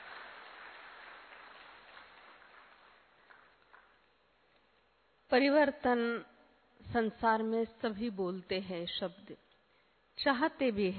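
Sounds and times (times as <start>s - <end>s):
audience clapping in welcome: 0.0s - 4.2s
speech: 5.3s - 6.3s, 6.9s - 9.4s, 10.2s - 10.9s.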